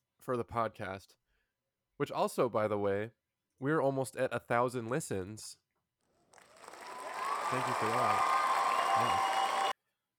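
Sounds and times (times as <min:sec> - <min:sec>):
speech: 0:00.2 - 0:01.2, 0:02.0 - 0:05.6, 0:07.5 - 0:08.3, 0:09.0 - 0:09.3
studio audience applauding: 0:06.4 - 0:09.7.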